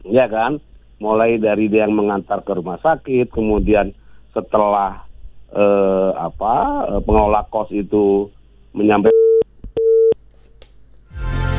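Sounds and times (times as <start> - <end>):
rush of broadband noise as the phone line drops: 0.0 - 9.1
speech: 0.1 - 9.2
phone call disconnect tone beep: 9.1 - 10.2.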